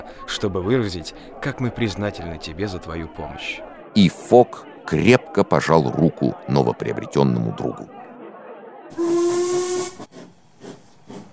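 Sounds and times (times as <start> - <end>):
speech: 0.3 - 8.0
steam locomotive whistle: 8.9 - 10.1.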